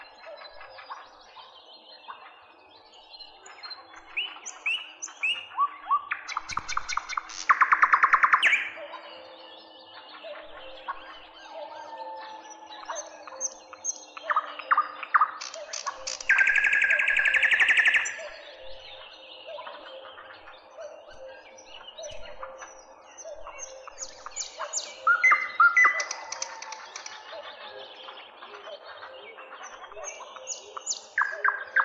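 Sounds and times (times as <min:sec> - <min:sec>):
nightingale song: 0:00.0 - 0:31.8.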